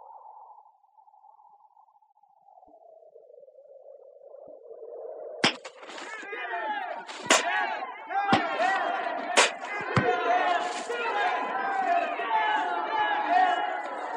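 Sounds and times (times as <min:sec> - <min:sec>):
angry mob shouting: 0:06.1 - 0:14.1.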